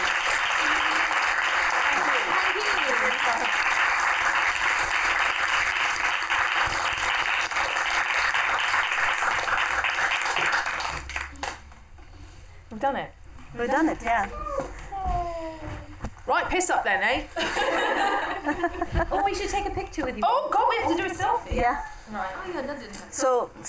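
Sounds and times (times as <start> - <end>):
audience applause: 0.0 - 11.6
speech: 12.9 - 14.7, 16.3 - 23.6
laughter: 17.3 - 19.4.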